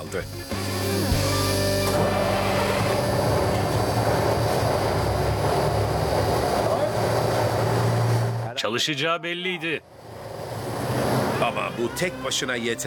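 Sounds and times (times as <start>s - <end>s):
speech: 0.0s - 1.0s, 8.6s - 10.0s, 11.4s - 12.8s
grinding mechanical whine from faulty transmission: 0.0s - 8.5s
20-ton truck engine running: 0.0s - 8.7s, 9.8s - 12.8s.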